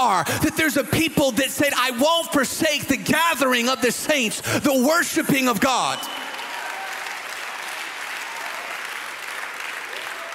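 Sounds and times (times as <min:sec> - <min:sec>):
speech: 0:00.0 - 0:06.2
audience clapping: 0:05.9 - 0:10.3.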